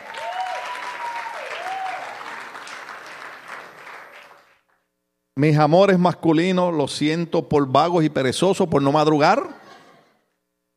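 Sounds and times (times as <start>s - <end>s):
audience applause: 0.0s - 4.7s
speech: 5.4s - 9.6s.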